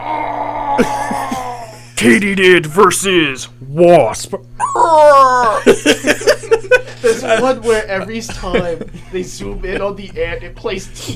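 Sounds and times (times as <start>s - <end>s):
person imitating distorted screaming: 0.0s - 1.8s, 4.6s - 5.7s
steady humming background: 0.0s - 11.1s
speech: 0.8s - 1.2s, 2.0s - 6.3s, 7.0s - 11.1s
laughter: 0.8s - 2.0s, 5.3s - 10.2s.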